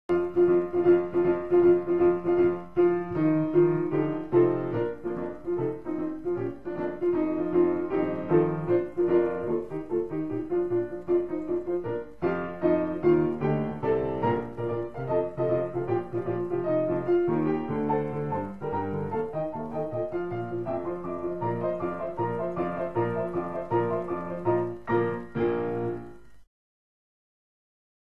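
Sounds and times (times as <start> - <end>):
galop dance music: 0.1 - 26.4.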